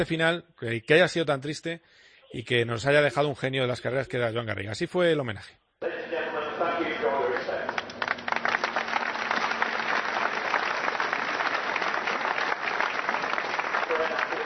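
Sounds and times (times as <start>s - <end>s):
speech: 0.0s - 6.2s
crowd applause after minute of silence: 5.8s - 14.4s.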